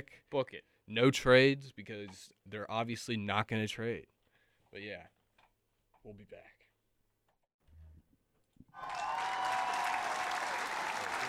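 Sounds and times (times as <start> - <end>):
speech: 0.0 - 5.2, 6.0 - 6.6
applause: 8.8 - 11.2.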